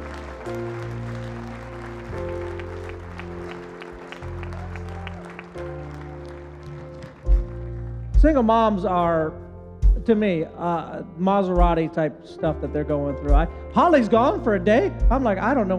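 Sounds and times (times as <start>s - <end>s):
audience hand clapping: 0.0s - 8.2s
speech: 0.4s - 1.0s, 8.2s - 9.4s, 10.1s - 15.7s.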